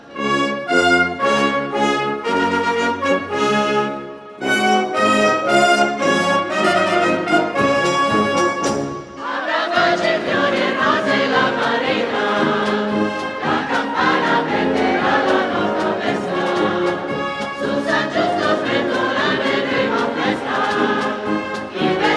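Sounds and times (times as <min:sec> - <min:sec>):
philharmonic band playing: 0:00.0 - 0:22.1.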